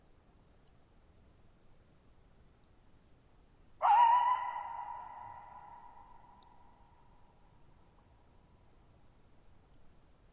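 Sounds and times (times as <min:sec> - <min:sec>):
coyote howling: 0:03.8 - 0:06.9.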